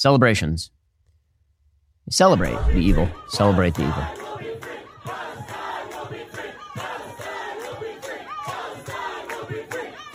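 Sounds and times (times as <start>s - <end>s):
speech: 0.0s - 0.8s, 2.1s - 4.2s
crowd chanting at a rally: 2.4s - 10.1s.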